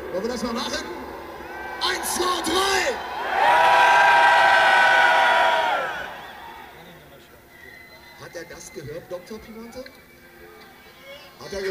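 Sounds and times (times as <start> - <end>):
crowd shouting a greeting: 0.0 - 6.8
speech: 0.1 - 1.1, 2.0 - 3.7, 8.7 - 10.1, 11.4 - 11.6.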